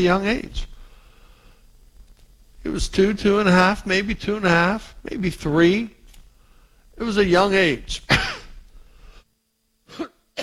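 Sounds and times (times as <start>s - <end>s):
speech: 0.0s - 0.7s, 2.6s - 6.0s, 7.0s - 8.3s
person coughing into a microphone: 8.1s - 8.6s, 9.9s - 10.4s.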